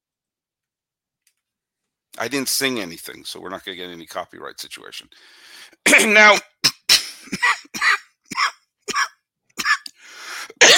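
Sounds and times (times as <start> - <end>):
speech: 2.2 - 6.5, 7.3 - 8.0
person choking cough struggling to clear the throat: 5.9 - 10.7.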